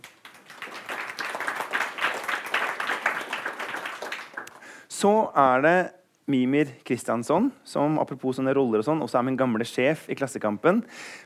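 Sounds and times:
audience applause: 0.0 - 4.7
speech: 5.0 - 11.2.

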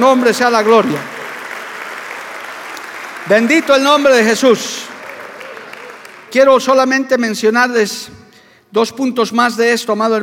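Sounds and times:
speech: 0.0 - 1.1, 3.3 - 4.9, 6.3 - 10.2
audience clapping: 0.0 - 7.1.

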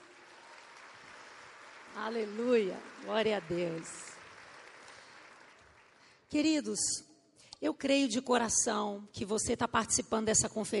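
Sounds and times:
audience applauding: 0.0 - 6.2
speech: 2.0 - 4.1, 6.3 - 10.7.

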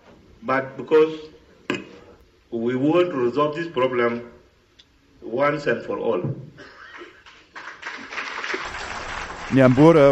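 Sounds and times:
speech: 0.4 - 1.9, 2.5 - 4.4, 5.2 - 6.7, 9.5 - 10.1
large crowd applauding in parliament: 7.2 - 10.1.

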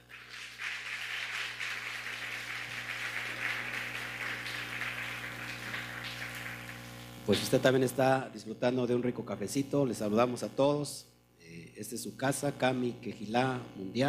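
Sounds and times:
applause: 0.0 - 7.7
low constant hum: 0.0 - 14.0
speech: 7.3 - 14.0.

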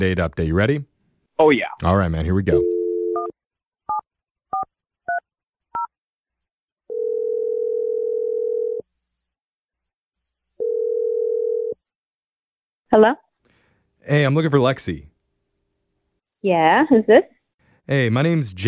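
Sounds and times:
speech: 0.0 - 2.7, 12.9 - 13.2, 14.0 - 15.1, 16.4 - 18.6
telephone ringing tone: 2.5 - 3.3, 6.9 - 8.8, 10.6 - 11.8.

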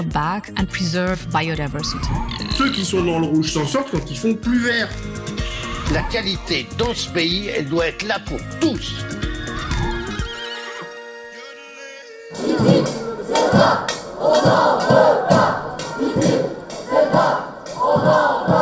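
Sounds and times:
speech: 0.0 - 5.2, 5.9 - 9.3, 13.6 - 14.9
protest crowd chanting outside parliament: 12.3 - 18.6.

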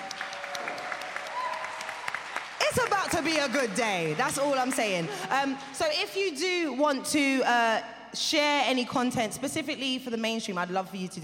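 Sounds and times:
audience clapping: 0.0 - 5.3
speech: 2.7 - 11.2.

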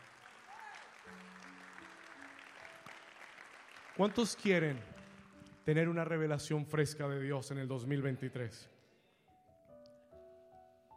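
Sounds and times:
audience applause: 0.0 - 5.6
speech: 4.0 - 4.9, 5.6 - 8.7.

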